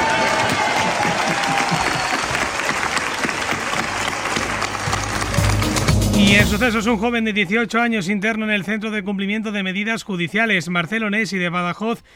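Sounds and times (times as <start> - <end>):
large theatre audience applause: 0.0 - 6.8
speech: 6.5 - 12.1.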